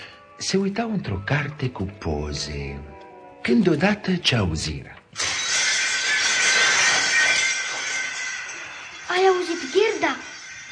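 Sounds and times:
speech: 0.4 - 5.4, 9.1 - 10.3
window glass shattering: 5.1 - 10.7.

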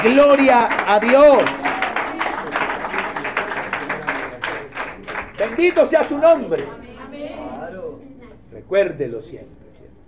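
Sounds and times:
speech: 0.0 - 1.7, 5.4 - 6.8, 8.6 - 9.6
church congregation clapping to the Lord: 0.0 - 6.6.

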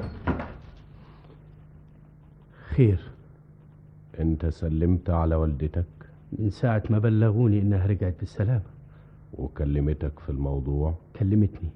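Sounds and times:
door being shut: 0.0 - 0.8
speech: 2.8 - 3.2, 4.2 - 11.7.

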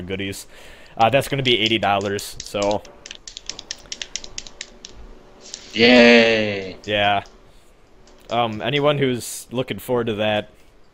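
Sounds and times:
speech: 0.1 - 3.0, 5.8 - 7.4, 8.3 - 10.6
game controller buttons clicking: 1.1 - 5.8.

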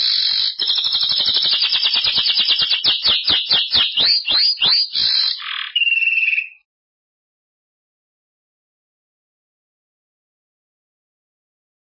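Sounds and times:
Belgian canary trilling: 0.0 - 6.6
speech: 4.1 - 5.2.

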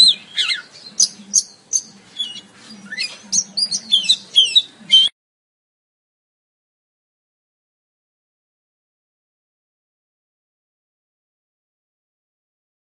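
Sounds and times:
Oriental magpie-robin song: 0.0 - 5.1.

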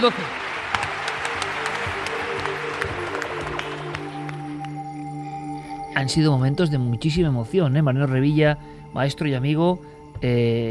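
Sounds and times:
speech: 0.0 - 0.4, 6.0 - 10.7
audience applause: 0.0 - 5.0.

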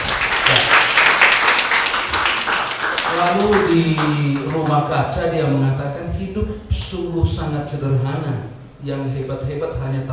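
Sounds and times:
audience applause: 0.0 - 4.7
speech: 3.2 - 10.1.

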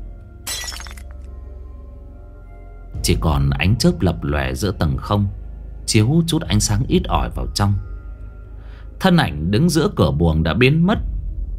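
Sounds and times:
oil lamp falling to the floor and shattering: 0.4 - 1.3
glass fragments tinkling: 0.5 - 1.2
speech: 3.0 - 7.9, 9.0 - 11.1.

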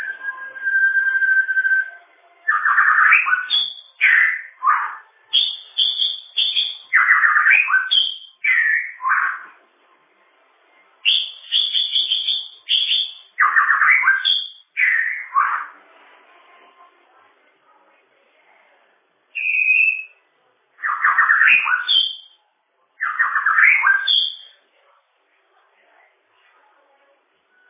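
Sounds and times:
bird song: 0.0 - 9.6, 11.0 - 15.8, 19.4 - 20.2, 20.8 - 22.4, 23.0 - 24.6.

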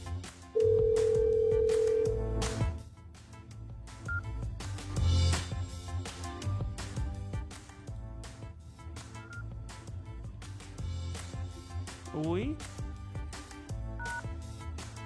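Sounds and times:
busy tonal music-like background: 0.0 - 15.0
electronic telephone ringing tone of an unanswered call: 0.6 - 2.2.

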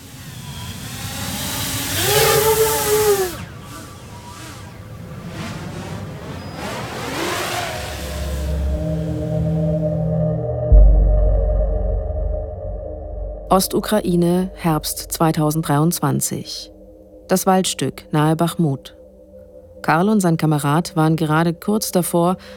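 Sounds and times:
small drone motor taking off and accelerating: 0.0 - 10.2
low steady droning hum: 8.0 - 22.0
speech: 13.5 - 16.7, 17.3 - 19.0, 19.8 - 22.5.

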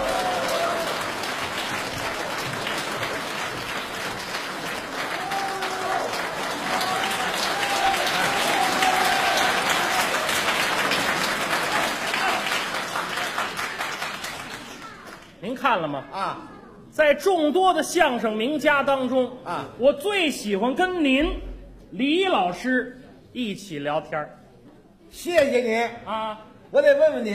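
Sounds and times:
sustained audience applause: 0.0 - 15.4
speech: 15.7 - 24.4, 25.1 - 27.3.

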